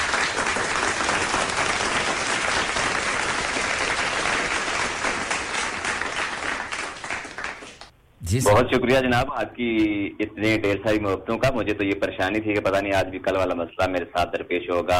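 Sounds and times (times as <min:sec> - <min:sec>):
audience applause: 0:00.0 - 0:07.9
speech: 0:08.3 - 0:14.9.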